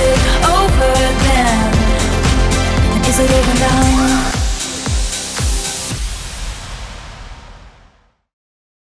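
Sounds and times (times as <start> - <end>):
sweeper over beat mix: 0.0 - 6.7.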